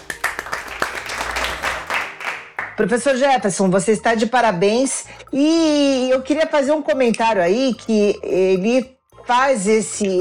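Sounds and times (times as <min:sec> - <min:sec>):
group applauding: 0:00.0 - 0:02.8
speech: 0:02.8 - 0:10.1.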